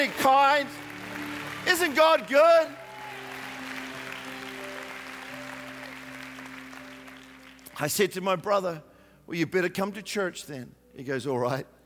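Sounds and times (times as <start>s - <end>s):
speech: 0.0s - 0.9s, 1.6s - 2.8s, 7.8s - 11.8s
audience clapping: 0.0s - 7.8s.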